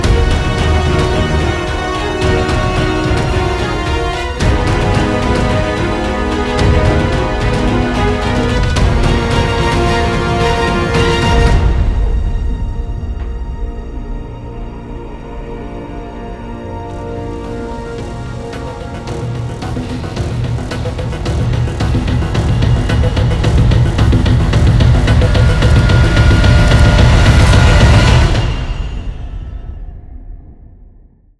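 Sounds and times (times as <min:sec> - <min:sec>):
survival countdown music: 0:00.0 - 0:12.3, 0:16.4 - 0:28.6.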